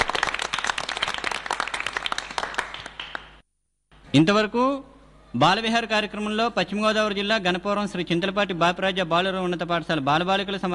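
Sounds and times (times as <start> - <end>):
audience applauding schoolchildren performers at a children's program: 0.0 - 3.4
speech: 4.1 - 10.7.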